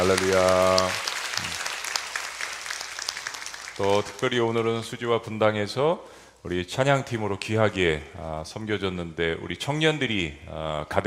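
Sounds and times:
speech: 0.0s - 1.5s, 3.8s - 11.0s
church congregation applauding in thanks to God during a worship service: 0.0s - 4.8s.

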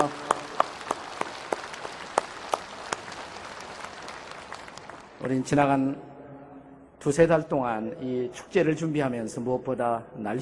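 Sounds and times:
audience applauding: 0.0s - 5.3s
speech: 5.2s - 6.1s, 7.0s - 10.4s.

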